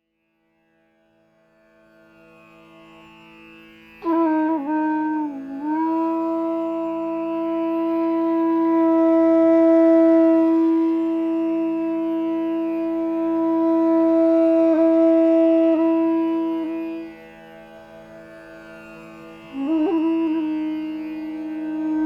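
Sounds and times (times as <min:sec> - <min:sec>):
flute: 0:04.0 - 0:17.3, 0:19.5 - 0:22.0.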